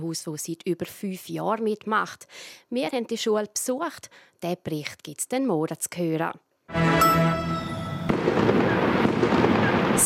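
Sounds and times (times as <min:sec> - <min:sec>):
speech: 0:00.0 - 0:07.4
fireworks exploding: 0:07.8 - 0:10.0.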